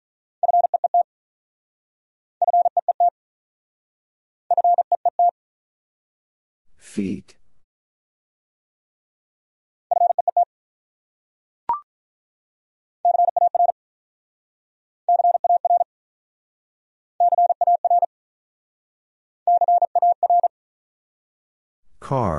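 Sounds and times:
fast Morse code beeps: 0.4s - 1.0s, 2.4s - 3.1s, 4.5s - 5.3s, 13.0s - 13.7s, 15.1s - 15.9s, 17.2s - 18.1s, 19.5s - 20.5s
speech: 6.8s - 7.4s, 22.1s - 22.3s.

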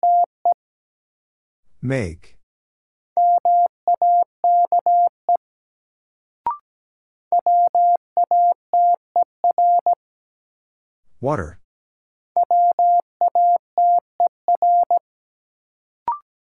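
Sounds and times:
Morse code tones at 17 words per minute: 0.0s - 0.3s, 3.2s - 5.1s, 7.3s - 10.0s, 12.4s - 15.0s
speech: 1.8s - 2.4s, 11.2s - 11.6s.

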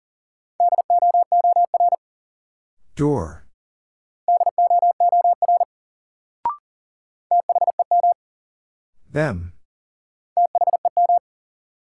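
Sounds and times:
fast Morse code tones: 0.6s - 2.0s, 4.3s - 5.7s, 7.3s - 8.2s, 10.4s - 11.2s
speech: 3.0s - 3.4s, 9.1s - 9.6s.

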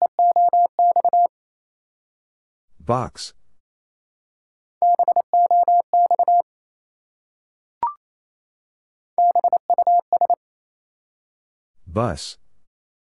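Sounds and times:
fast Morse code tones at 28 wpm: 0.0s - 1.3s, 4.8s - 6.4s, 9.2s - 10.4s
speech: 2.9s - 3.4s, 12.0s - 12.4s.

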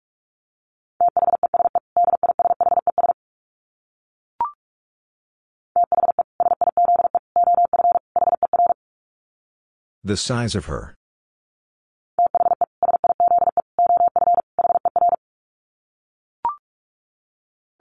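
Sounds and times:
rapid Morse code beeps at 45 words per minute: 1.0s - 3.2s, 5.8s - 8.8s, 12.2s - 15.2s
speech: 10.0s - 11.0s.

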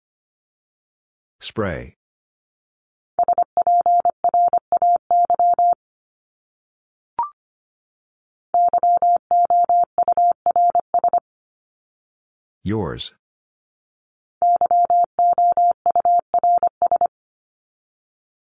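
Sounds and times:
speech: 1.4s - 2.0s, 12.6s - 13.2s
Morse code beeps at 25 wpm: 3.2s - 5.8s, 8.6s - 11.2s, 14.4s - 17.1s.

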